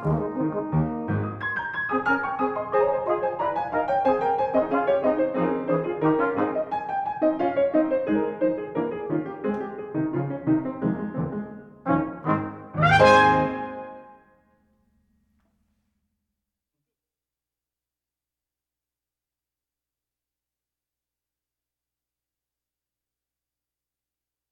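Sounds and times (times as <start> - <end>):
brass ensemble: 0.0 - 9.4, 10.0 - 14.2.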